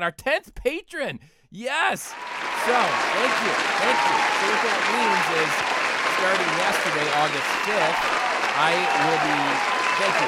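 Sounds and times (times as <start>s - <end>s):
speech: 0.0s - 10.2s
applause: 2.1s - 10.2s.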